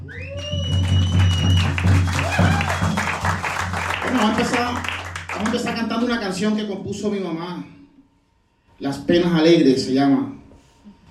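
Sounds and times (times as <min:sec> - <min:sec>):
audience applause: 0:00.0 - 0:05.8
speech: 0:04.2 - 0:07.8, 0:08.8 - 0:10.4.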